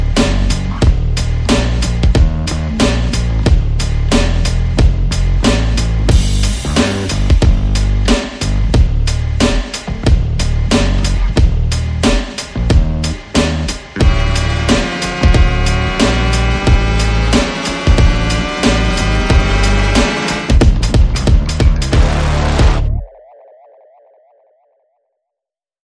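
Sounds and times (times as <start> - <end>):
bass: 0.0 - 23.0
percussion: 0.0 - 23.2
sound effects: 14.0 - 24.9.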